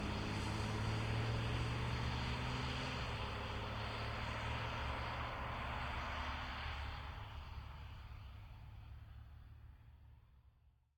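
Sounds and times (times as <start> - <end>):
BMW F12 640D Gran Coupe slowly driving away: 0.0 - 7.4
BMW F12 640D Gran Coupe stopping on wet asphalt from 40kmph: 0.0 - 8.9.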